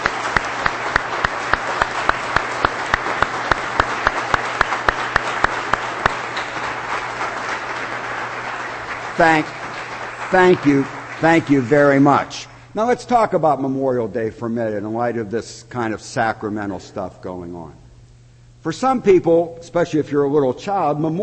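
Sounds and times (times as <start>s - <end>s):
audience applause for veterans: 0.0s - 12.3s
speech: 9.2s - 9.6s, 10.3s - 17.8s, 18.6s - 21.2s.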